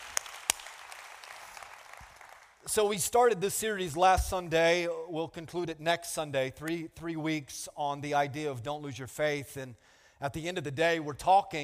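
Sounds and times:
church audience applause: 0.0 - 2.6
speech: 2.6 - 11.6.

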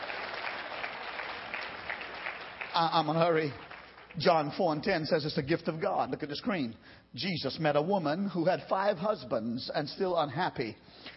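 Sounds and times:
audience applause: 0.0 - 4.2
speech: 2.8 - 11.1.

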